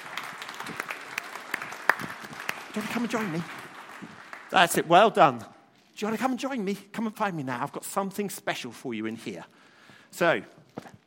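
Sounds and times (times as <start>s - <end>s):
crowd clapping: 0.0s - 5.4s
speech: 2.8s - 10.6s.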